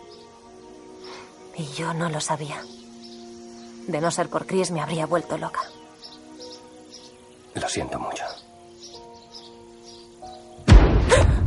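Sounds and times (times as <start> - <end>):
speech: 1.6 - 2.8, 3.9 - 5.8, 7.6 - 8.4
battleship firing its cannon in a strait: 10.7 - 11.4.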